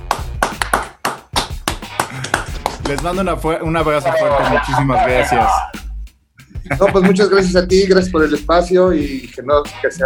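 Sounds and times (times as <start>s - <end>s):
audience applause of sharp hand claps: 0.0s - 3.4s
speech: 2.9s - 5.8s, 6.7s - 10.0s
laughter: 3.9s - 5.8s, 6.5s - 7.8s.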